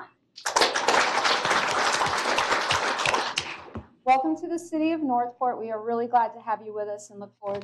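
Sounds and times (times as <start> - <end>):
audience applause: 0.4 - 3.7
speech: 4.1 - 7.6.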